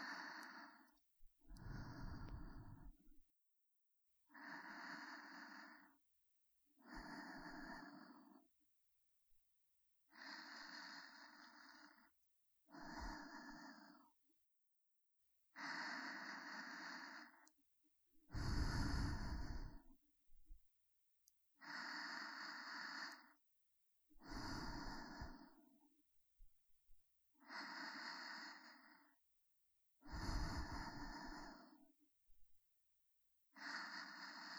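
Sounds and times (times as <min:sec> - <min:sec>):
breathing in the right and left ear: 0:00.0 - 0:03.2, 0:04.3 - 0:06.0, 0:06.8 - 0:08.5, 0:10.1 - 0:12.1, 0:12.7 - 0:14.2, 0:15.6 - 0:17.5, 0:18.3 - 0:20.5, 0:21.6 - 0:23.4, 0:24.2 - 0:25.8, 0:27.4 - 0:29.2, 0:30.0 - 0:32.5, 0:33.5 - 0:34.5.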